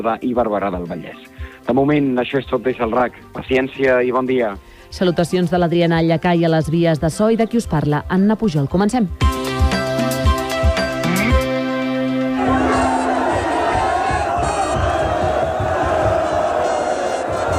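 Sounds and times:
speech: 0.0 - 9.4
tonal music notes: 9.2 - 17.5
fans cheering and shouting in Barcelona streets celebrating Spain's World Cup victory: 12.3 - 17.5.

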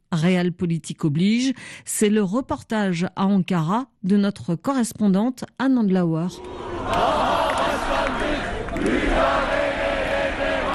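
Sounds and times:
speech: 0.2 - 7.4
opposition activists shouting in anger: 6.4 - 10.7.

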